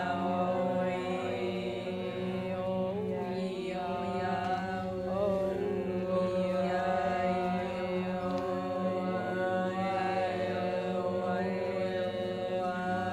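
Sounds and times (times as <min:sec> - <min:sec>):
choir singing at a meeting: 0:00.0 - 0:13.1.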